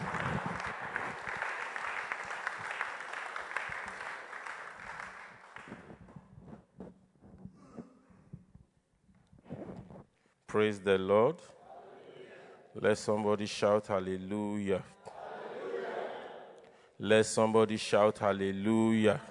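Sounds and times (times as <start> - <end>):
audience applause: 0.0 - 5.8
speech: 10.5 - 11.6, 12.8 - 15.0, 17.0 - 19.2.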